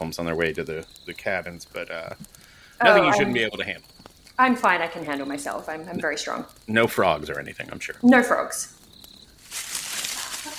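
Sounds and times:
speech: 0:00.0 - 0:08.8
rustling of leaves and foliage in bushes: 0:09.3 - 0:10.5.

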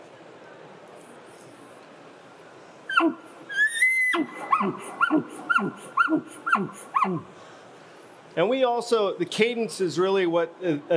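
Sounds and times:
hunter imitating an elk bull's chuckle call: 0:02.9 - 0:07.2
speech: 0:03.0 - 0:03.3, 0:04.6 - 0:07.5, 0:08.4 - 0:10.9.

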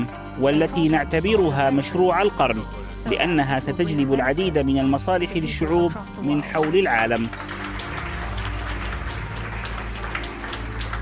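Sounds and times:
speech: 0:00.0 - 0:07.6
warm applause from a large crowd at a summit: 0:06.5 - 0:11.0.

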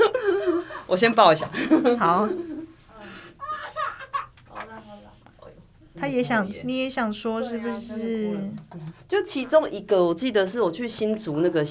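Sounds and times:
laughter: 0:00.0 - 0:04.8
speech: 0:00.9 - 0:02.5, 0:06.0 - 0:11.6
baby crying: 0:03.4 - 0:04.4.

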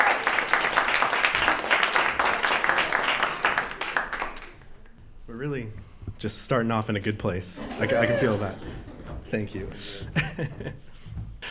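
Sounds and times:
audience applause: 0:00.0 - 0:04.9, 0:07.6 - 0:10.1
speech: 0:06.2 - 0:10.9
laughter: 0:07.6 - 0:11.2.

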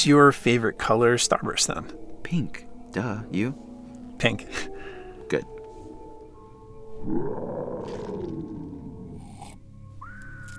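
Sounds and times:
speech: 0:00.0 - 0:05.6, 0:07.0 - 0:08.4
movie marsh monster roar: 0:07.0 - 0:09.4.

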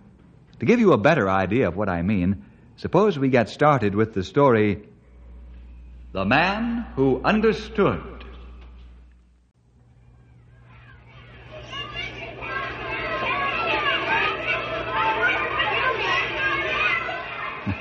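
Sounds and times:
speech: 0:00.6 - 0:04.9, 0:06.1 - 0:08.2
children shouting and laughing coming home from school: 0:09.9 - 0:17.8.

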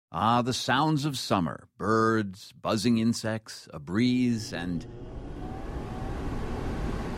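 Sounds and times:
speech: 0:00.1 - 0:05.2
air conditioning unit running: 0:04.2 - 0:07.1.

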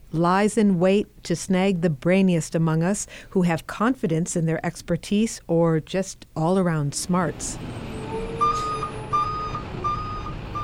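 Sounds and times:
speech: 0:00.1 - 0:08.0
truck engine rumble: 0:07.3 - 0:10.6
truck backup alarm beeps: 0:07.9 - 0:10.6.

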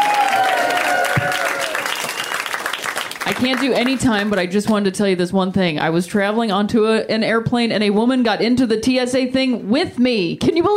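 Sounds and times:
scattered cheers: 0:00.0 - 0:02.6
audience applause for a comic: 0:00.0 - 0:04.4
thin whistle: 0:02.0 - 0:02.7
speech: 0:03.3 - 0:10.7.

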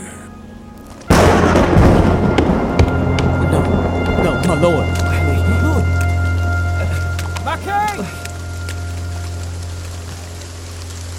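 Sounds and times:
heavy storm rain: 0:00.8 - 0:11.1
low constant rumble: 0:01.1 - 0:11.1.

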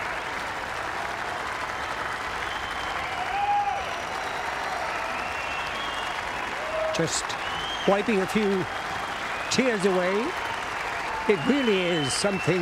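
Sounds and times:
golf gallery crowd applause: 0:00.0 - 0:12.5
speech: 0:07.0 - 0:08.9, 0:09.5 - 0:10.4, 0:11.2 - 0:12.5.

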